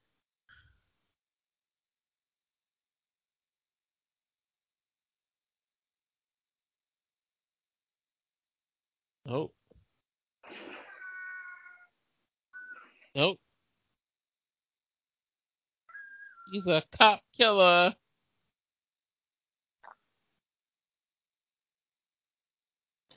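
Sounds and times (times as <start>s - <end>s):
speech: 9.3s - 9.6s, 13.2s - 13.4s, 16.5s - 18.0s
cat meowing: 10.9s - 11.9s.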